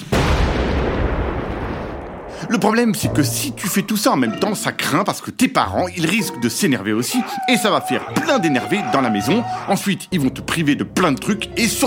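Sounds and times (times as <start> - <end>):
dynamite explosion: 0.0 - 2.9
speech: 2.5 - 11.8.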